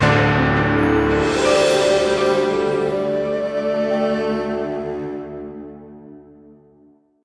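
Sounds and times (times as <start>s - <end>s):
free spin outro music: 0.0s - 5.3s.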